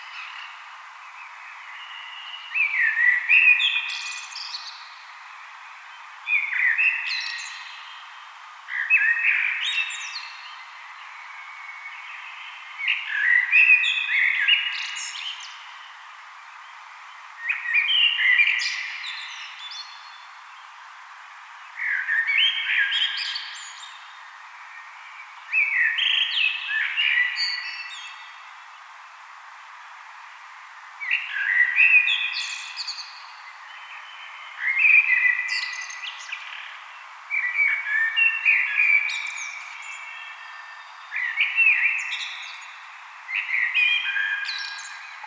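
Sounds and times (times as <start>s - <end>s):
common blackbird song: 0.0s - 29.2s, 30.9s - 45.2s.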